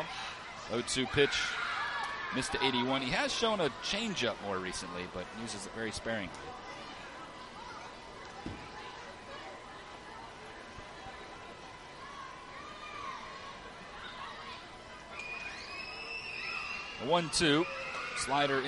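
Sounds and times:
ballpark crowd murmur: 0:00.0 - 0:18.6
speech: 0:00.7 - 0:01.6, 0:02.3 - 0:06.8, 0:17.1 - 0:18.6
children shrieking in ballpark stands: 0:15.2 - 0:18.6.

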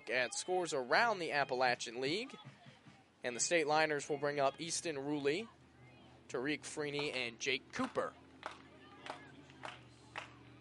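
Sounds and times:
low crowd murmur: 0:00.0 - 0:10.6
speech: 0:00.1 - 0:02.6, 0:03.2 - 0:05.6, 0:06.3 - 0:08.6
baseball fans at a Stateliners game clapping in rhythm: 0:06.6 - 0:10.6.

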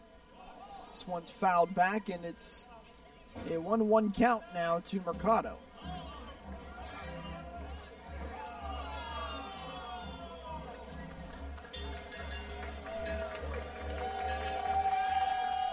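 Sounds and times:
speech: 0:01.0 - 0:02.7, 0:03.4 - 0:05.7
baseball fans cheering: 0:04.2 - 0:15.7.

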